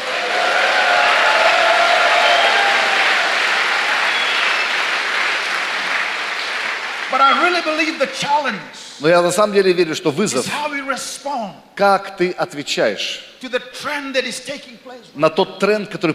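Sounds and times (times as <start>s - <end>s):
audience applause: 0.0s - 8.2s
speech: 7.5s - 16.1s.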